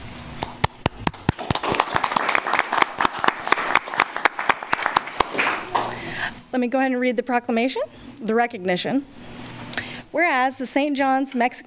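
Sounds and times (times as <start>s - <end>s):
audience applause: 0.8s - 6.0s
speech: 6.6s - 9.3s, 10.2s - 11.6s.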